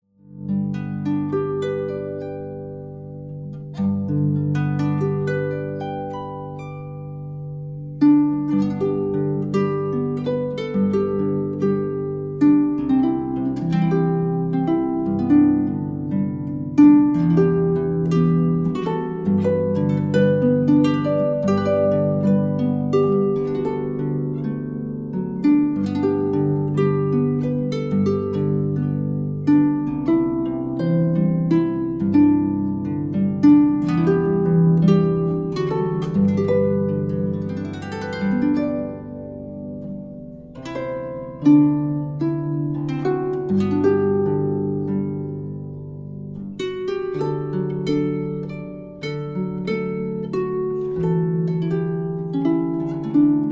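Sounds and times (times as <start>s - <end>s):
harp: 0.0s - 53.5s.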